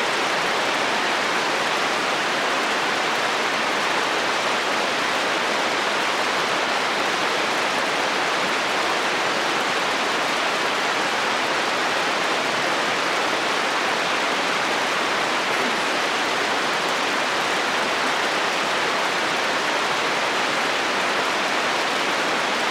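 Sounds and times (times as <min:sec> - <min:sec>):
steady rain on a roof: 0:00.0 - 0:22.6.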